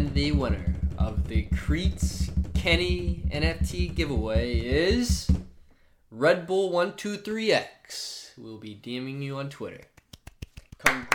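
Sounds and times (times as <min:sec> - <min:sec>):
speech: 0:00.2 - 0:05.5, 0:06.1 - 0:09.9, 0:10.8 - 0:11.1
quiet golf clap: 0:09.8 - 0:11.1.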